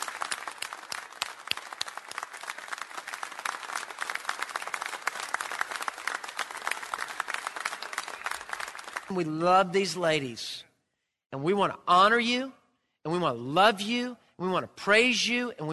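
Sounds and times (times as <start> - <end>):
applause: 0.0 - 9.7
speech: 9.1 - 10.7, 11.3 - 15.7.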